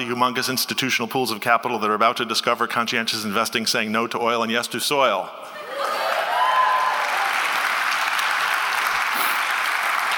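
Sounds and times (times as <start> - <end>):
speech: 0.0 - 5.7
audience applause: 5.7 - 10.1.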